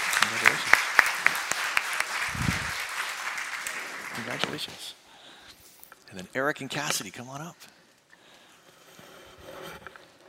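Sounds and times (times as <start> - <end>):
round of applause at a small congratulatory gathering: 0.0 - 5.0
speech: 4.2 - 5.0, 6.1 - 7.8.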